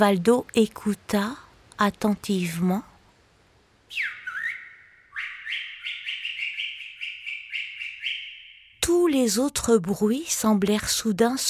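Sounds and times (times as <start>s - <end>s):
speech: 0.0s - 2.9s, 3.9s - 4.2s, 8.9s - 11.4s
small bird chirping: 3.9s - 8.8s.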